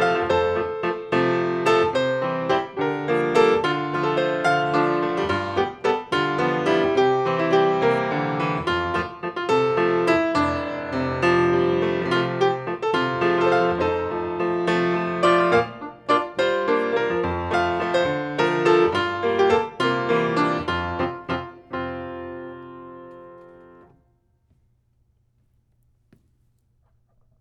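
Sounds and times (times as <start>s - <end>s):
fast waltz music: 0.0s - 21.6s.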